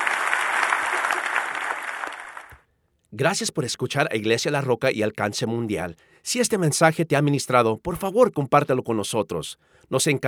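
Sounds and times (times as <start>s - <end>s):
audience applause: 0.0s - 2.6s
speech: 3.2s - 10.2s.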